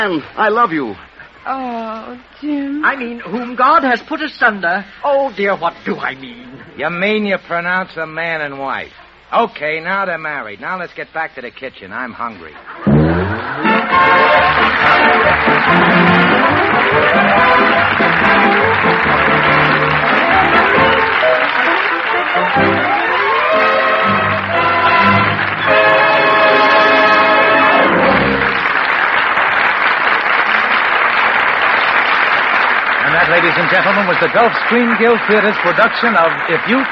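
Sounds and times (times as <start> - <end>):
theater audience applause: 0.0 - 1.1, 12.9 - 36.9
speech: 0.0 - 14.1, 15.4 - 16.2, 33.4 - 36.9.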